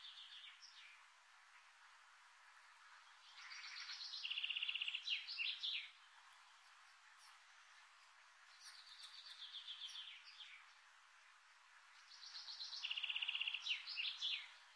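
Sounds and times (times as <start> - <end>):
birds singing in the morning: 0.0 - 1.1, 2.9 - 7.8, 8.4 - 10.9, 11.9 - 14.7.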